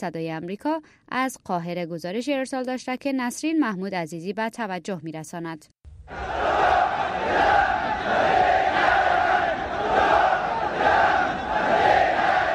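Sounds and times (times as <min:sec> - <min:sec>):
speech: 0:00.0 - 0:08.5
crowd of Saleh supporters chanting in Sabaeen Square, Sanaa: 0:06.1 - 0:12.5.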